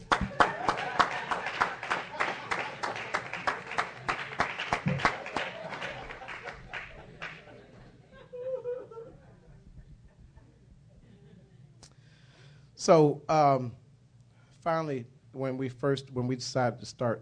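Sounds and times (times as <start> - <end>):
steady rhythmic audience clapping: 0.0 - 7.6
laughter: 0.0 - 11.7
speech: 12.8 - 13.8, 14.6 - 17.2.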